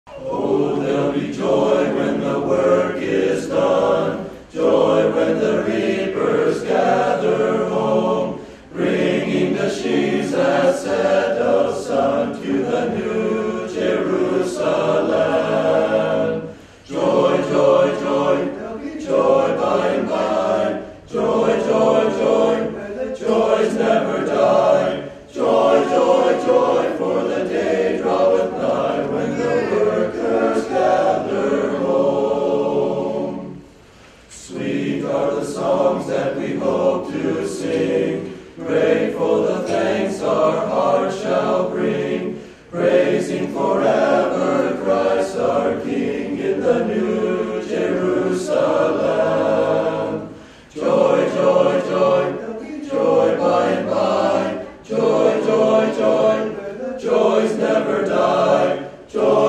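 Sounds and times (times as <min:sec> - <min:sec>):
Mennonites singing: 0:00.0 - 0:59.4.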